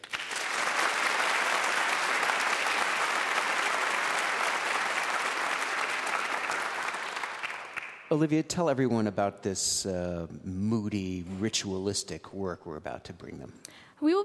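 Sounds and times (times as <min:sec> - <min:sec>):
audience applause welcoming a 16-year-old flutist from Vienna, Virginia: 0:00.0 - 0:08.1
speech: 0:08.1 - 0:14.2.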